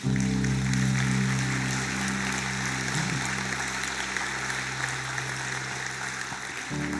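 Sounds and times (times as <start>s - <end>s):
audience applauding: 0.0s - 6.9s
sustained low keyboard chord: 0.0s - 6.9s.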